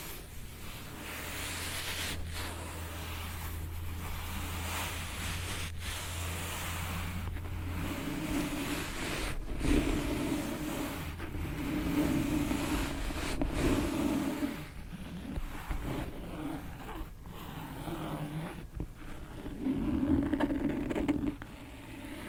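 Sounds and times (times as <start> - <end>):
book scratching: 0.0 - 22.2.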